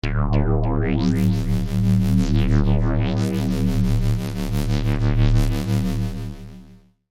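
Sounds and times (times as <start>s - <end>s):
vintage science fiction UFO beam ray: 0.4s - 6.8s.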